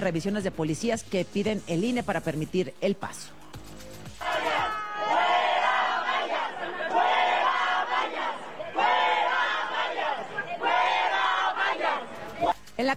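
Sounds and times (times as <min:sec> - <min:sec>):
speech: 0:00.0 - 0:03.4
protesting crowd chanting: 0:03.4 - 0:12.7.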